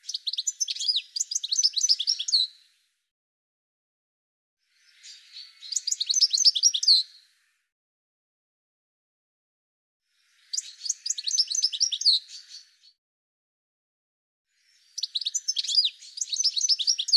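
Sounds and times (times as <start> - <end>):
birds chirping and twittering: 0.0 - 2.8, 4.6 - 7.7, 10.1 - 13.0, 14.5 - 17.1.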